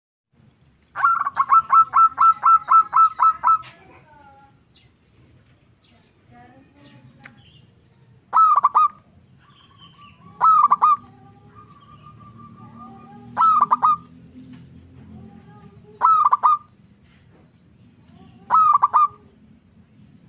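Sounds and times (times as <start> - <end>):
local-type zebra dove cooing: 1.0 - 3.9, 8.3 - 14.1, 16.0 - 16.7, 18.4 - 19.4.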